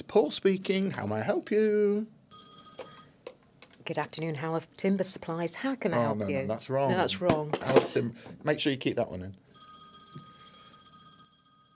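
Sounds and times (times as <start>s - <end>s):
speech: 0.1s - 2.5s, 3.9s - 9.7s
telephone bell ringing in the office of a timber and building supplies firm: 2.3s - 3.2s, 9.4s - 11.7s.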